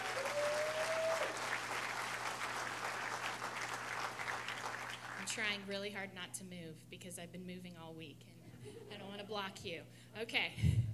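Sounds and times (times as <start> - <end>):
audience applause: 0.0 - 5.3
speech: 5.4 - 10.9.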